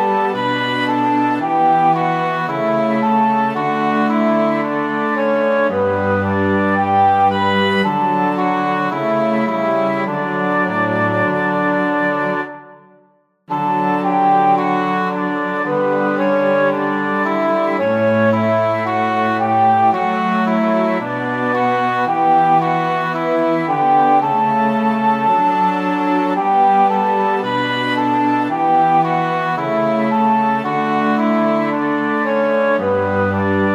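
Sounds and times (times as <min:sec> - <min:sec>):
instrumental music in D major with three voices: 0:00.0 - 0:33.7.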